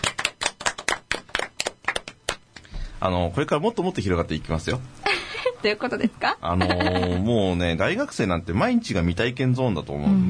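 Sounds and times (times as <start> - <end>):
people clapping: 0.0 - 2.6
speech: 3.0 - 10.2.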